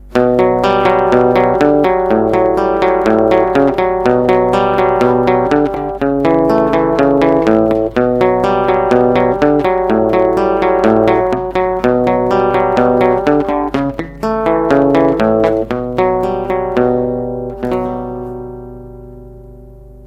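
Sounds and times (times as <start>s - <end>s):
guitar: 0.0s - 20.0s.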